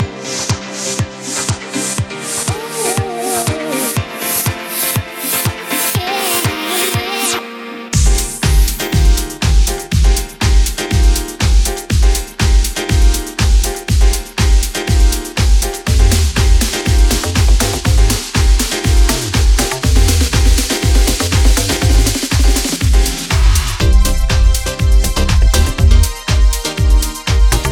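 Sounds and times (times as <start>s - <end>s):
rhythm track at 121 bpm with all stems: 0.0s - 7.2s, 8.0s - 27.6s.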